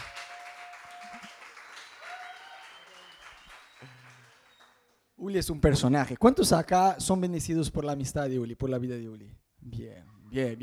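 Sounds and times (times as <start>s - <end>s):
audience applause: 0.0s - 4.9s
speech: 5.2s - 10.6s.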